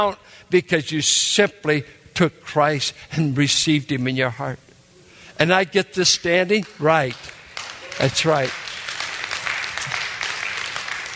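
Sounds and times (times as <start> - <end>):
speech: 0.0 - 4.7, 5.4 - 7.4, 8.0 - 8.6
audience applause: 6.8 - 11.1.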